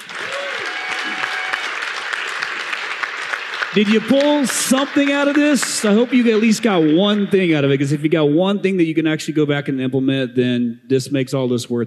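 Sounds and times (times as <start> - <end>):
audience applause: 0.0 - 7.5
tonal whistle or whoop: 0.2 - 1.8
speech: 3.7 - 11.8.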